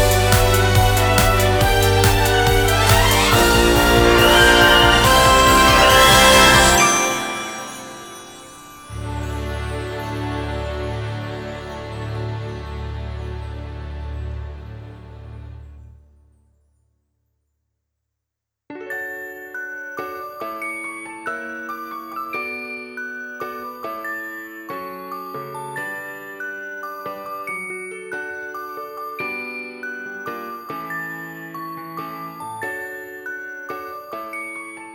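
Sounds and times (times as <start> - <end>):
live orchestral music: 0.0 - 15.9.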